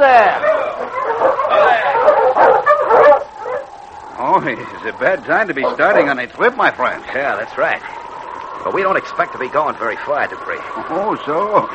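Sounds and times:
speech: 0:00.0 - 0:01.0, 0:04.4 - 0:08.0, 0:08.6 - 0:11.7
sled dogs barking and yipping as sled approaches: 0:00.0 - 0:06.2.

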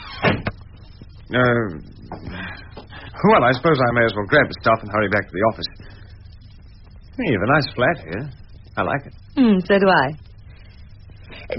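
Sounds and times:
door being closed: 0:00.0 - 0:00.6
speech: 0:01.3 - 0:02.3, 0:03.2 - 0:05.9, 0:07.2 - 0:10.2.

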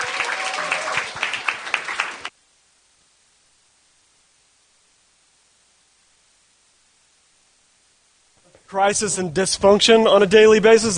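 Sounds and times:
audience clapping to welcome two speakers: 0:00.0 - 0:02.4
speech: 0:08.7 - 0:10.9.

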